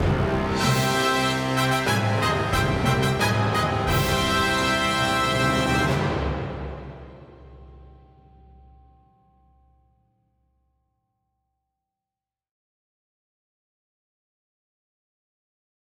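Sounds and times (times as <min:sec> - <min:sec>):
cinematic regal fanfare stinger: 0:00.0 - 0:07.3.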